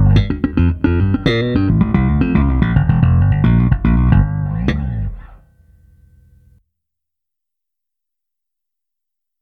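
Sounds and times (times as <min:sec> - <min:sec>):
custom jazz bass guitar slap tone: 0:00.0 - 0:06.6.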